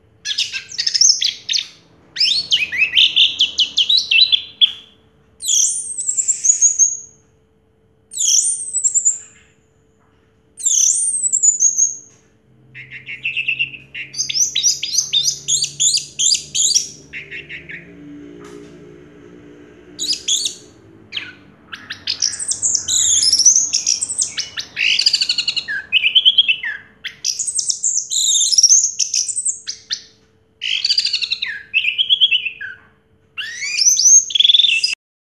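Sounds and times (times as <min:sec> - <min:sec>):
faint hum: 0:00.0 - 0:35.0
orange-headed thrush singing: 0:12.7 - 0:26.8.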